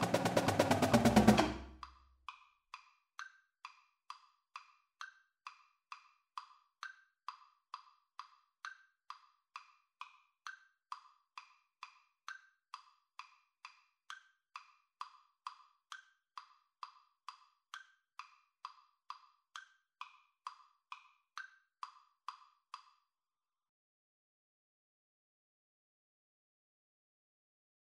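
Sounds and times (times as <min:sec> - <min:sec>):
drumline drumming: 0:00.0 - 0:01.8.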